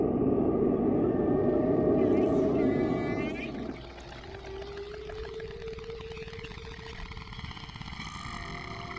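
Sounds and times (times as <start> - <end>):
whales calling: 0.0 - 5.8.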